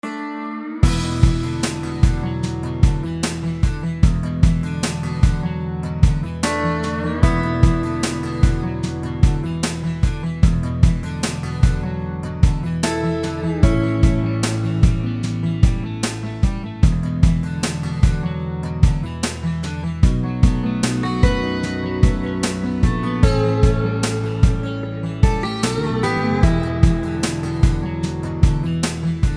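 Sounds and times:
blues music: 0:00.0 - 0:29.3.

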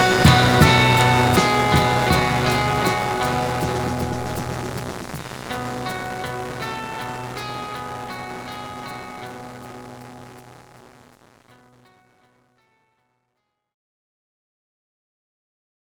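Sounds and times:
noise: 0:00.0 - 0:12.6.

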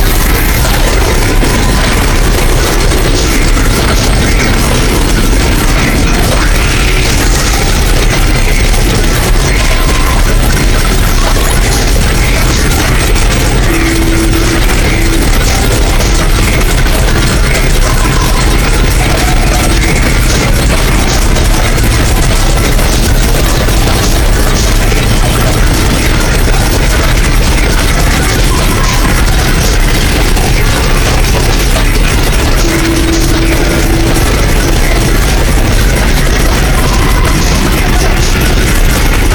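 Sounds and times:
wall of noise: 0:00.0 - 0:39.3.

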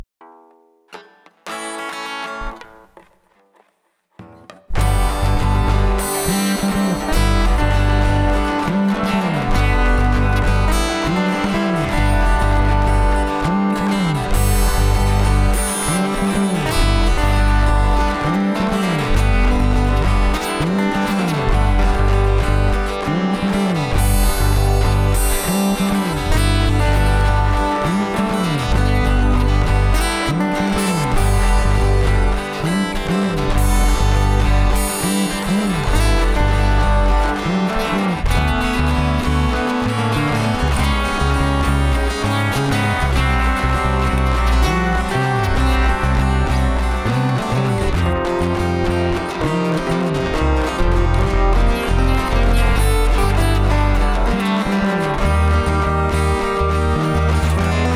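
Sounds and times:
guitar: 0:00.0 - 0:57.9.

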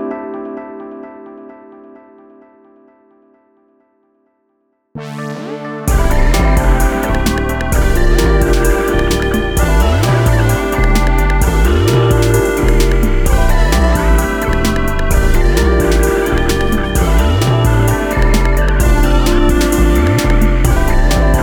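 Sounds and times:
chillwave music with 808 drum machine: 0:05.0 - 0:21.4.

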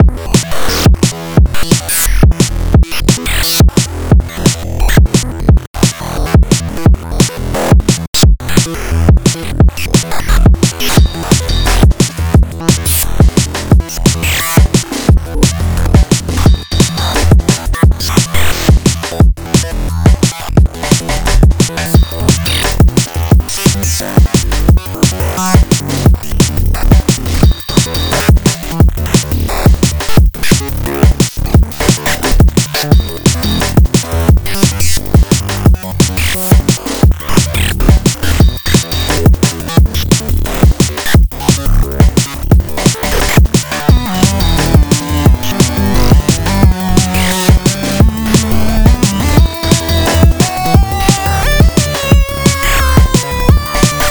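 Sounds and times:
wavetable synth funk: 0:00.0 - 0:54.1.

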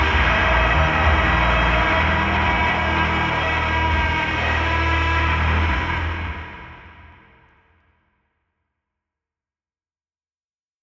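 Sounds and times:
digital sound bath: 0:00.0 - 0:06.9.

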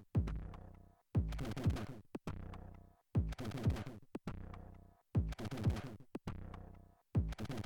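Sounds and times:
noise drum: 0:00.1 - 0:00.5, 0:01.1 - 0:02.4, 0:03.1 - 0:03.9, 0:05.1 - 0:05.9, 0:07.1 - 0:07.5.

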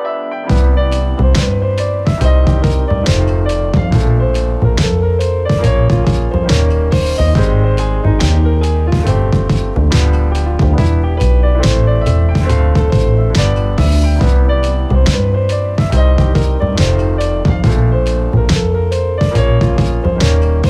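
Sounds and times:
lo-fi hip hop music: 0:00.2 - 0:20.6.

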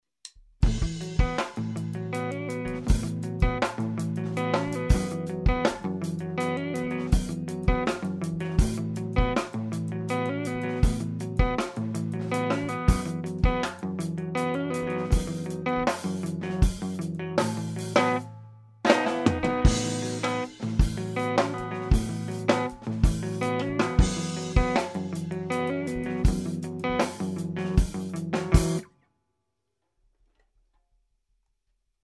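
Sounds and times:
math rock guitar riff: 0:00.6 - 0:18.3, 0:18.9 - 0:28.9.

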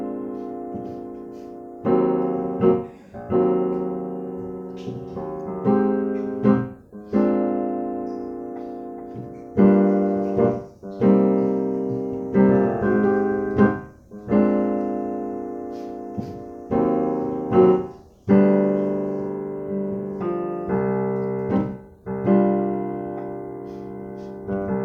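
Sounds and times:
jazz chords: 0:00.0 - 0:24.8.

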